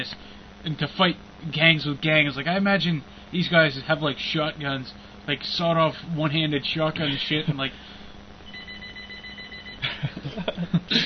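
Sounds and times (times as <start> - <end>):
speech: 0.0 - 8.0
telephone ringing: 8.5 - 9.9
laughter: 9.8 - 11.0.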